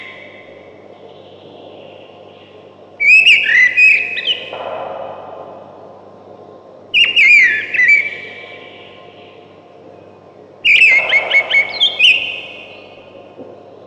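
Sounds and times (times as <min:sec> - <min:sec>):
thrush singing loud whistled phrases: 0:03.0 - 0:04.8, 0:06.9 - 0:09.4, 0:10.6 - 0:13.1.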